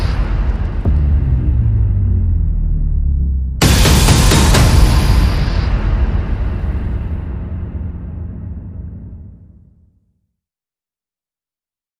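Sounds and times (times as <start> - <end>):
percussion: 0.0 - 9.5
sound effects: 0.0 - 9.8.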